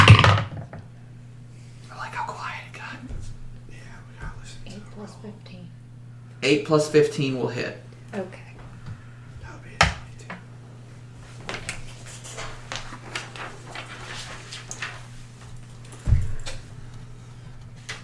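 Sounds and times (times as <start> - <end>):
handful of dice rattling across a table: 0.0 - 0.6
speech: 6.4 - 8.4.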